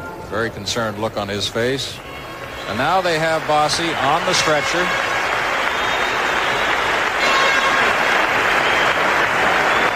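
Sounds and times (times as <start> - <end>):
speech: 0.4 - 5.1
arena crowd applauding at the Gardens: 2.2 - 9.9.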